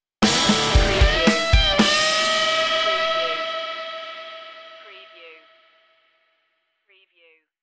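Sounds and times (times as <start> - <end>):
music stinger: 0.2 - 5.7.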